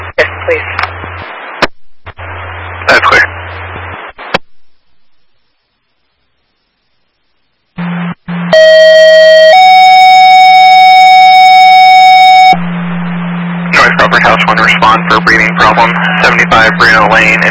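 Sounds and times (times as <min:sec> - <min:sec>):
speech: 0:00.5 - 0:00.8, 0:14.6 - 0:17.4
dispatch radio alert tones: 0:07.8 - 0:17.4.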